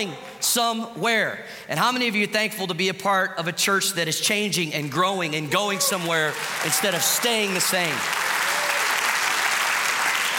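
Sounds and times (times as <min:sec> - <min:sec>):
speech: 0:00.0 - 0:08.2
audience clapping: 0:05.6 - 0:10.3.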